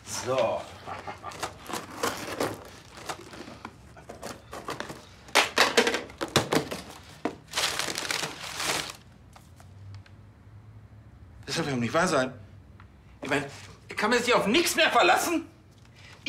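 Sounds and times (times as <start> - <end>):
speech: 0.2 - 1.2, 11.6 - 12.4, 13.3 - 15.5
package cut open with scissors and unwrapped: 1.2 - 5.6, 6.2 - 9.6.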